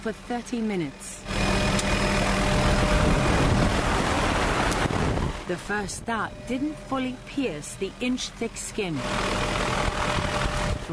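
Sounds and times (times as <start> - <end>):
speech: 0.0 - 1.6, 5.5 - 9.5
helicopter engine droning: 0.0 - 10.9.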